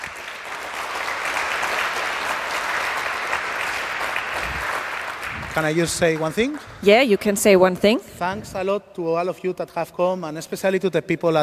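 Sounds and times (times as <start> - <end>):
audience applause: 0.0 - 6.7
speech: 5.6 - 11.4.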